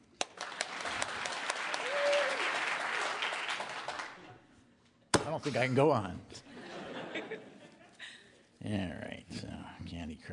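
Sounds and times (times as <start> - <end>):
audience applause: 0.2 - 4.2
speech: 5.4 - 6.5, 8.6 - 10.3
laughter: 6.5 - 8.4.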